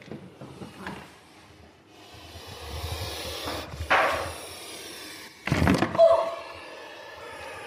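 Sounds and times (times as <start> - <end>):
puff adder giving breathy hissing puffs in an opened cage: 0.6 - 5.5, 6.4 - 7.6.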